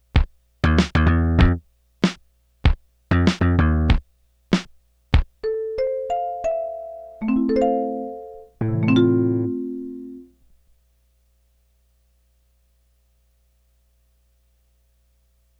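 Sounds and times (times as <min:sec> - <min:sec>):
bass: 0:00.0 - 0:01.7, 0:03.1 - 0:04.1, 0:05.4 - 0:10.3
drums: 0:00.0 - 0:05.6
marimba: 0:05.4 - 0:10.3
synthesizer: 0:05.6 - 0:10.3.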